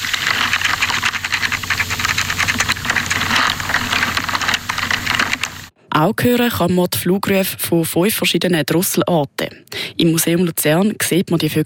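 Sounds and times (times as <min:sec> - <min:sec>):
low steady hum: 0:00.0 - 0:05.7
underground soil scratching and clicking in a dry meadow: 0:00.0 - 0:05.7
speech: 0:06.0 - 0:11.6.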